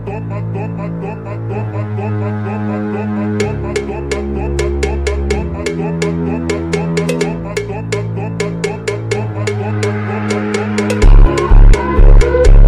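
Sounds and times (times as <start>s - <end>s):
funk music: 3.3s - 12.6s.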